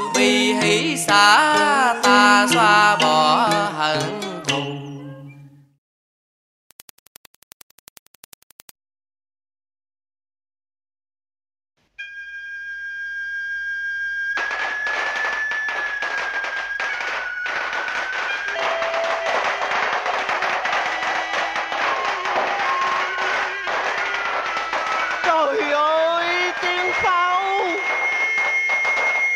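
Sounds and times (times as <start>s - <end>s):
speech: 0.2s - 4.7s
wedding firecrackers popping: 14.3s - 29.3s.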